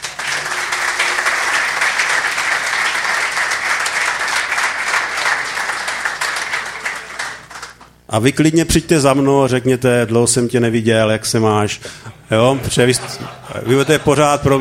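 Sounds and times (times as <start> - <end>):
audience applause: 0.0 - 7.8
speech: 8.1 - 14.5
laughter: 12.1 - 14.5.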